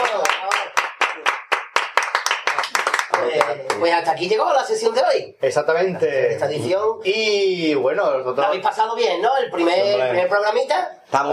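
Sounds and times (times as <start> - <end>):
few people clapping: 0.0 - 3.9
speech: 3.5 - 11.3.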